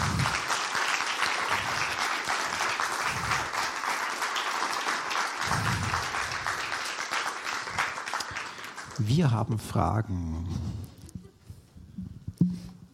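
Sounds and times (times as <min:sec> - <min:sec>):
strong audience applause after a talk: 0:00.0 - 0:09.4
speech: 0:09.0 - 0:10.9.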